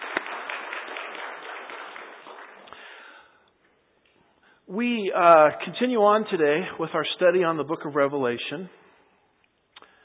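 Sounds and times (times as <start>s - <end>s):
audience applause: 0.0s - 3.2s
speech: 4.7s - 8.8s.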